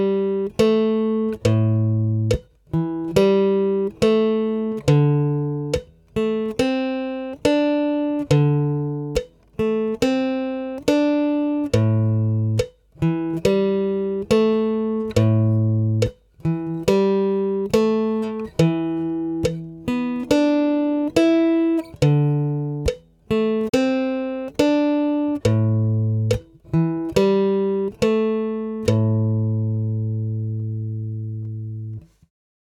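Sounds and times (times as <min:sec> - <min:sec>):
slow easy guitar riff: 0:00.0 - 0:32.3.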